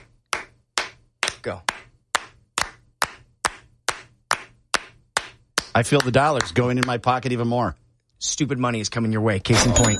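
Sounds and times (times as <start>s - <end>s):
hand clapping: 0.0s - 7.2s
speech: 1.4s - 1.7s, 5.8s - 9.9s.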